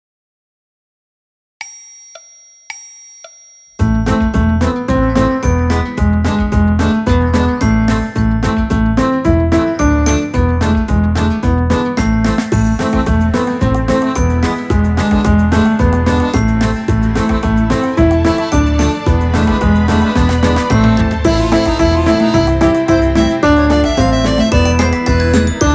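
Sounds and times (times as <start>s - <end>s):
piano: 3.8s - 25.7s
orchestra playing: 12.7s - 25.7s.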